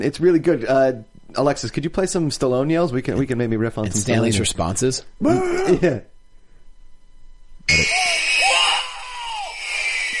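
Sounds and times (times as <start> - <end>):
speech: 0.0 - 6.1
table saw cutting in film clip: 7.7 - 10.1
wavering voice: 7.7 - 10.1.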